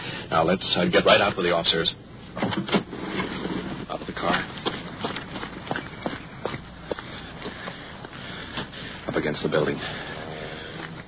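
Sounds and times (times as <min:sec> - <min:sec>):
dull hiss: 0:00.0 - 0:11.0
speech: 0:00.3 - 0:02.8, 0:04.2 - 0:04.5, 0:09.2 - 0:10.1
running footsteps: 0:04.0 - 0:11.0.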